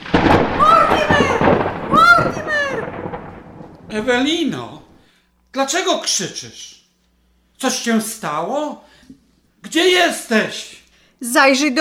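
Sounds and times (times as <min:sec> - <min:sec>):
deep continuous thunder rumbling in a thunderstorm: 0:00.0 - 0:05.1
speech: 0:04.0 - 0:04.8, 0:05.5 - 0:06.8, 0:07.6 - 0:11.8.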